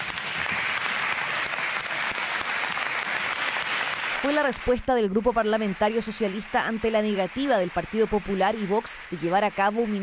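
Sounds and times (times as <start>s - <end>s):
crowd applause: 0.0s - 10.0s
speech: 4.2s - 10.0s.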